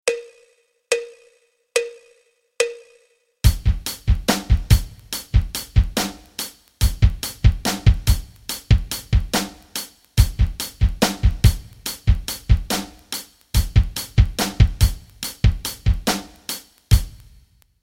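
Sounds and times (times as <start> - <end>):
rock rhythms: 3.4 - 17.4.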